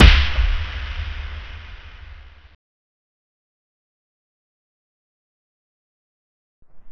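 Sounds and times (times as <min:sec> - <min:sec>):
drums: 0:00.0 - 0:02.5.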